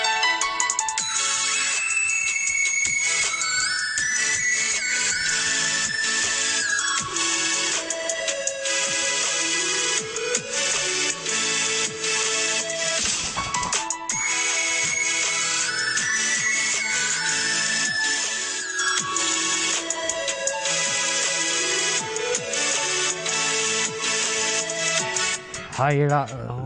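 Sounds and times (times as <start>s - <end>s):
shrill bright synth lead line: 0.0s - 25.5s
electronic dance drop from a rough demo: 0.3s - 26.6s
pounding beat: 0.5s - 26.3s
speech: 25.8s - 26.6s.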